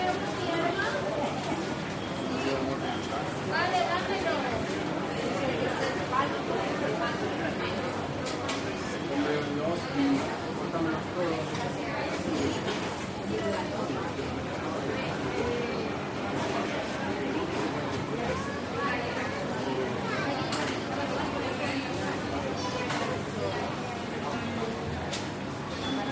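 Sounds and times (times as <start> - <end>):
Spanish market crowd of 40 to 50 adults: 0.0 - 26.0.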